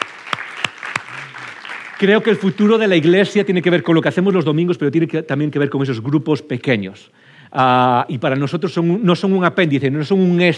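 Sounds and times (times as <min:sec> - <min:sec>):
audience applause: 0:00.0 - 0:03.6
speech: 0:02.0 - 0:10.5.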